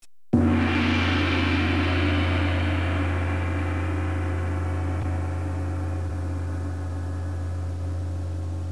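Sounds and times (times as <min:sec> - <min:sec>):
gong: 0:00.4 - 0:08.7.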